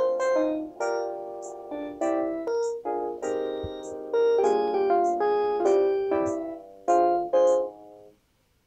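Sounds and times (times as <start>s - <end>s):
Panasonic ringtone: 0.2s - 7.7s.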